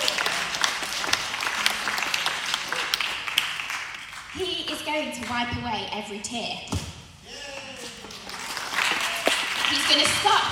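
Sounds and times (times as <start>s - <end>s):
crowd applause: 0.0s - 4.3s, 7.7s - 10.5s
speech: 4.4s - 6.8s, 9.9s - 10.5s.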